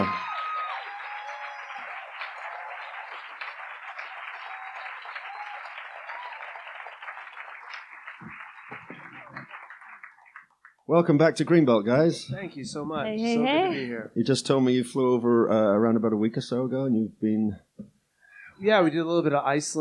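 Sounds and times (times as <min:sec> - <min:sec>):
audience applause at the Greenbelt festival: 0:00.0 - 0:10.8
speech: 0:10.9 - 0:17.7, 0:18.6 - 0:19.8.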